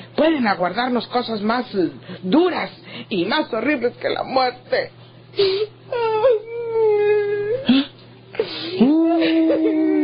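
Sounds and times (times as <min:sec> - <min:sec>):
low steady hum: 0:00.0 - 0:10.0
speech: 0:00.2 - 0:06.1
person crying and wailing: 0:05.4 - 0:10.0.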